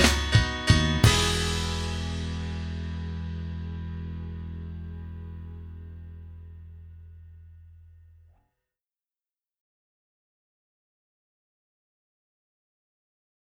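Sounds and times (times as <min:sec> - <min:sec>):
backing track without guitar: 0:00.0 - 0:08.4.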